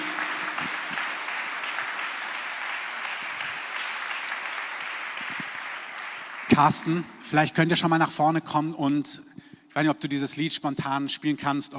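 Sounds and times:
audience applause: 0.0 - 7.2
speech: 6.6 - 11.7.

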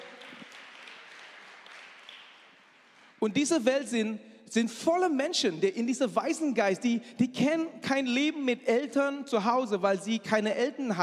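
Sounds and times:
audience clapping: 0.0 - 3.3
speech: 3.2 - 11.0.

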